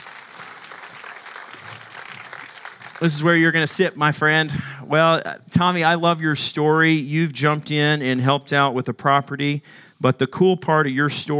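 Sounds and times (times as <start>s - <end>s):
round of applause: 0.0s - 3.6s
speech: 3.0s - 11.3s.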